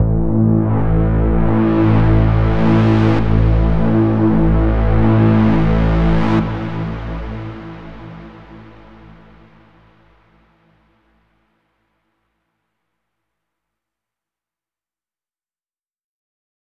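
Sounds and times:
overlay drone: 0.0 - 10.2.

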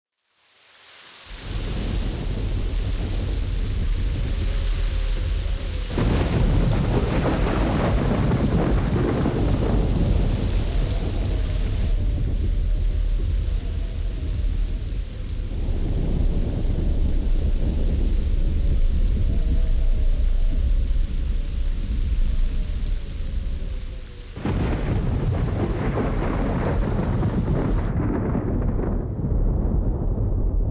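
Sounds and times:
ambient galleon exterior: 1.1 - 30.6.

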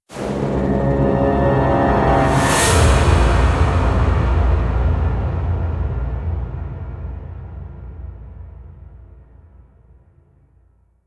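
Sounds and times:
musical stinger: 0.1 - 5.4.

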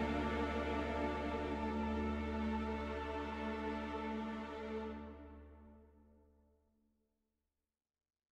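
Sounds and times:
secretive contrabass clarinet music cue: 0.0 - 5.4.

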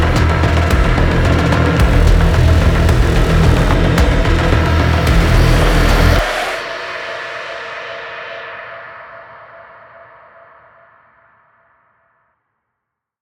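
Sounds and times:
main ambient music: 0.0 - 7.5.

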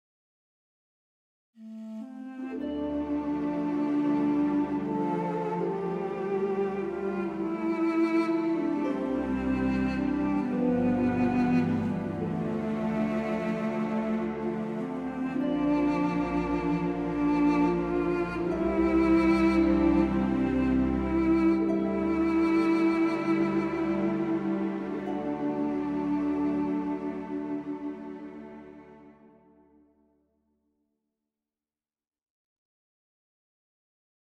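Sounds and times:
duduk solo music cue: 1.6 - 28.7.

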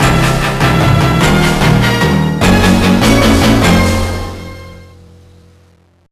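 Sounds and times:
final boss music beat: 0.0 - 4.9.

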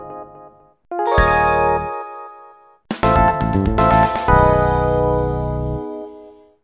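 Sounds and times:
golf jingle: 1.0 - 6.4.

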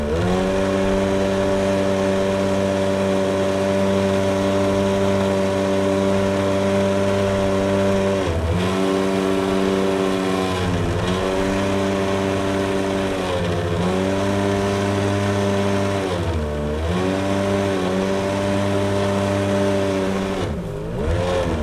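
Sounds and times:
speedboat driving: 0.0 - 21.6.

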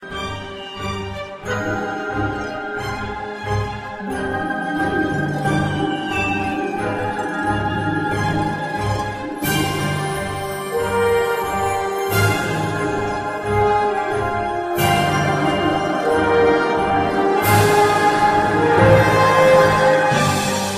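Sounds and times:
music at 180 bpm: 0.0 - 20.7.

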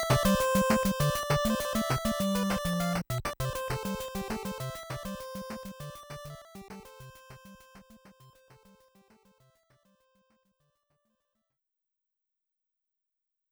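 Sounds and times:
stage background music: 0.0 - 7.6.

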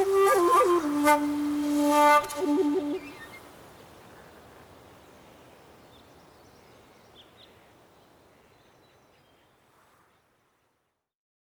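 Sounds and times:
lone shakuhachi: 0.0 - 3.6.

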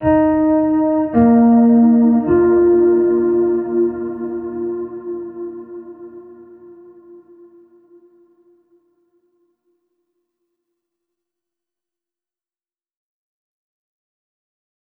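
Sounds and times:
overlay tone: 0.0 - 8.8.

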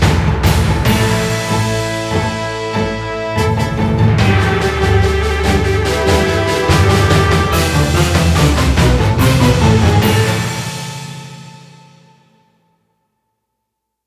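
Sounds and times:
tension music loop: 0.8 - 10.8.

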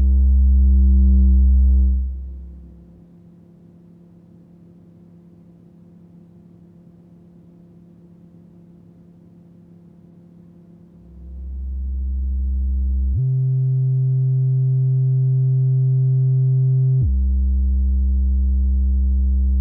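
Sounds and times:
bass: 0.0 - 3.0, 11.0 - 19.6.

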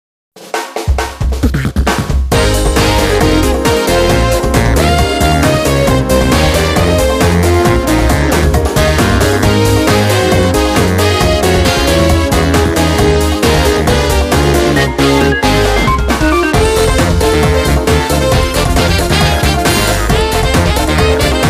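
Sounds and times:
music: 0.4 - 21.4.

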